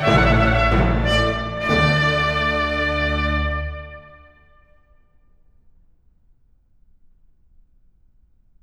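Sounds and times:
basso continuo: 0:00.0 - 0:04.7
string section: 0:00.0 - 0:04.7
trumpet: 0:00.0 - 0:05.0.

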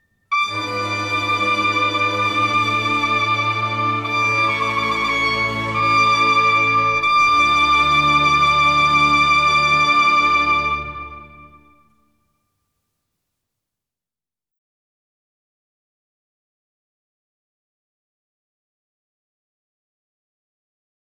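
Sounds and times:
recorder sonata in D minor: 0:00.3 - 0:11.8.

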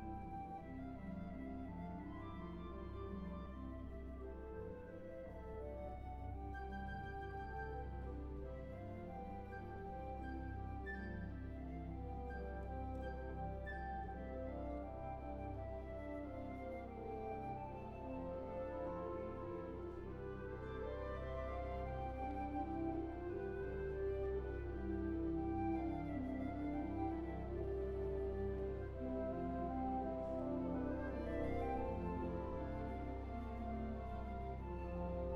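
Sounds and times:
suite for orchestra: 0:00.0 - 0:35.3.

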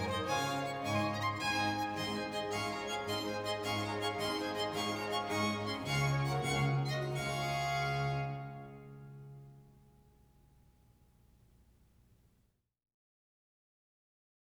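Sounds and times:
three violins and continuo playing a gigue in D major: 0:00.0 - 0:09.6.

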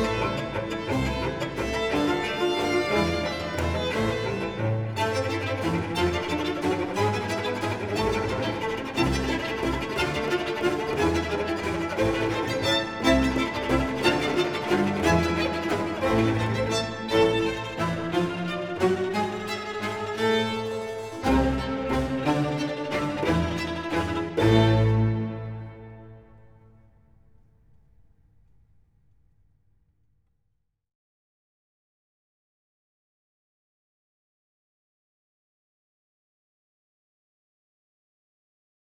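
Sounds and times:
solo cello in a concerto: 0:00.0 - 0:27.0
strings: 0:00.0 - 0:27.0.

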